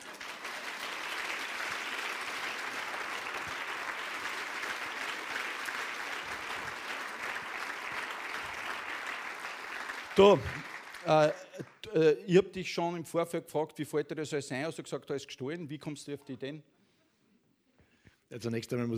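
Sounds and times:
audience applause: 0:00.0 - 0:11.9
speech: 0:10.2 - 0:16.8, 0:18.3 - 0:18.9.

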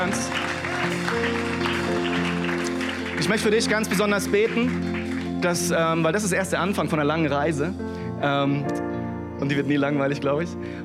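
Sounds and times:
audience applause: 0:00.0 - 0:06.2
sustained keyboard or organ chords: 0:00.0 - 0:10.8
speech: 0:03.2 - 0:08.8, 0:09.4 - 0:10.8.

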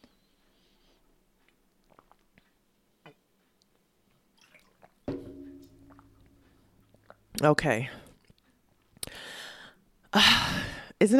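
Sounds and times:
person drinking water, gulping: 0:01.8 - 0:02.3, 0:04.4 - 0:07.2
speech: 0:07.4 - 0:08.0, 0:10.1 - 0:10.4.

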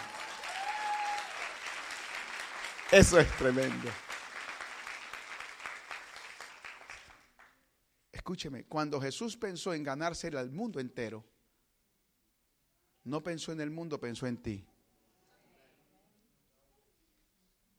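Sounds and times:
audience applause: 0:00.0 - 0:07.5
speech: 0:02.9 - 0:04.1, 0:08.3 - 0:11.3, 0:13.0 - 0:14.7.

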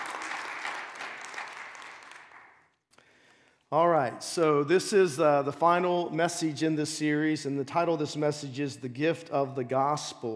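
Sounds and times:
audience applause: 0:00.0 - 0:02.6
speech: 0:03.7 - 0:10.3.

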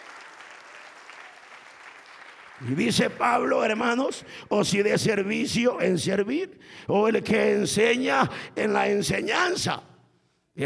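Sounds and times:
audience applause: 0:00.0 - 0:03.0
speech: 0:02.6 - 0:09.9.

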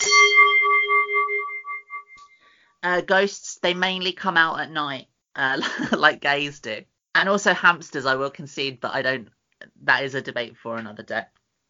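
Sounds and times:
bell sound effect: 0:00.0 - 0:02.4
speech: 0:02.8 - 0:11.4.

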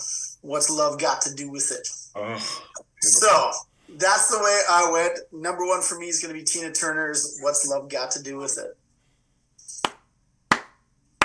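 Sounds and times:
speech: 0:00.4 - 0:08.8
clapping: 0:09.8 - 0:11.2.

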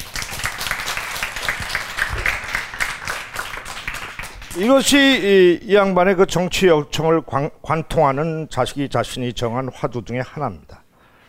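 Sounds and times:
audience applause: 0:00.0 - 0:04.6
speech: 0:04.6 - 0:10.8.

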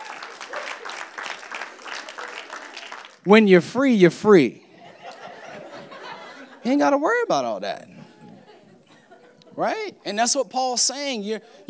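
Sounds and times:
audience applause: 0:00.0 - 0:03.3
speech: 0:03.2 - 0:04.6, 0:06.6 - 0:07.9, 0:09.6 - 0:11.6.

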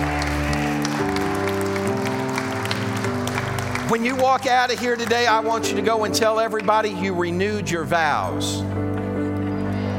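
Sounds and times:
audience clapping in praise: 0:00.0 - 0:06.9
speech: 0:03.9 - 0:08.9.

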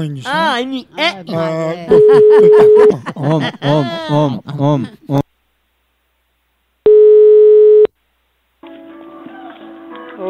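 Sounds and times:
speech: 0:00.0 - 0:05.2
laughter: 0:01.3 - 0:05.3
telephone line beep while placing a call: 0:01.9 - 0:02.9, 0:06.9 - 0:07.9.

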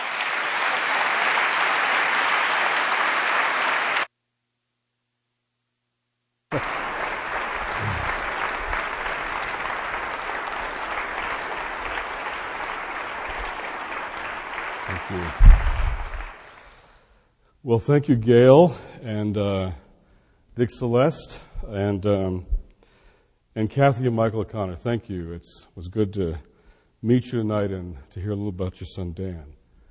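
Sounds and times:
audience applause welcoming a speaker: 0:00.0 - 0:04.1, 0:06.5 - 0:16.7
speech: 0:17.7 - 0:19.8, 0:20.6 - 0:22.5, 0:23.6 - 0:29.6.

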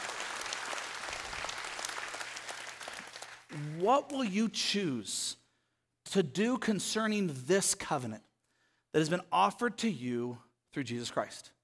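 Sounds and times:
audience applause: 0:00.0 - 0:03.8
speech: 0:03.5 - 0:05.4, 0:06.1 - 0:08.3, 0:08.9 - 0:11.6.

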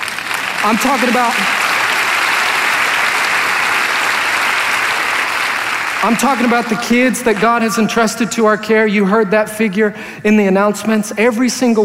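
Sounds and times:
church audience applause: 0:00.0 - 0:07.9
speech: 0:00.6 - 0:01.6, 0:06.0 - 0:11.8.

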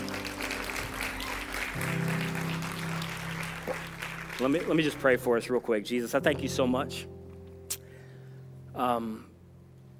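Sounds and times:
audience clapping: 0:00.0 - 0:06.2
speech: 0:04.4 - 0:07.2, 0:08.8 - 0:09.3.

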